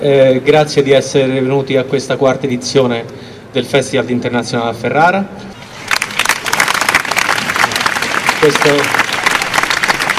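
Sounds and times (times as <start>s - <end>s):
speech: 0.0s - 5.5s, 8.4s - 9.0s
dense sustained applause from a large audience: 5.9s - 10.1s.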